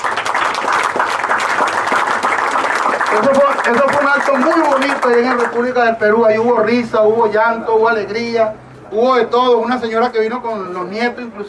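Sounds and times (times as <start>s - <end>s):
audience applause: 0.0s - 5.7s
speech: 3.1s - 11.4s.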